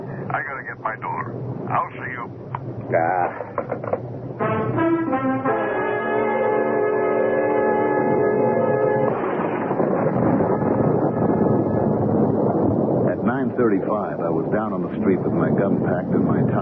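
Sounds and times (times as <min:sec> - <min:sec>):
storm wind and rain: 0:00.0 - 0:16.6
sustained horn-like chord: 0:04.4 - 0:09.6
speech: 0:13.7 - 0:16.6.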